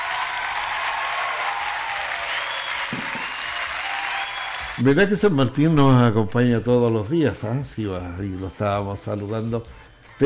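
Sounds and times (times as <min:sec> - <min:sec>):
big round of applause: 0:00.0 - 0:04.9
speech: 0:04.8 - 0:10.2.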